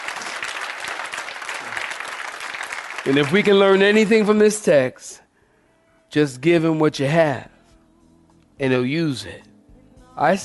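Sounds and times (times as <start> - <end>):
audience clapping hands: 0.0 - 4.8
speech: 3.0 - 5.2, 6.1 - 7.5, 8.6 - 9.5, 10.2 - 10.4.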